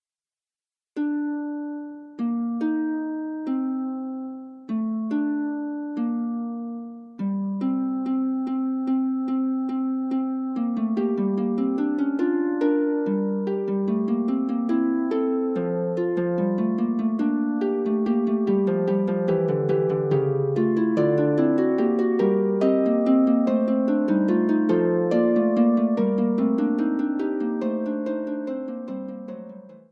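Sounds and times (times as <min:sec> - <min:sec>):
harp playing a fugue: 0:01.0 - 0:29.9.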